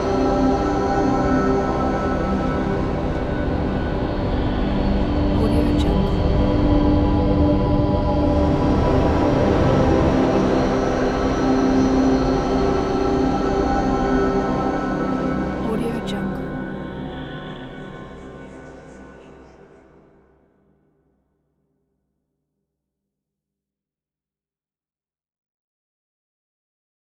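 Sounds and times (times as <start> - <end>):
cinematic ambient drone: 0.0 - 20.0.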